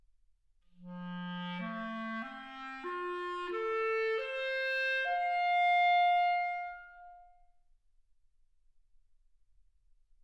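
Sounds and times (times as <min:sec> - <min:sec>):
clarinet: 0:00.7 - 0:07.4.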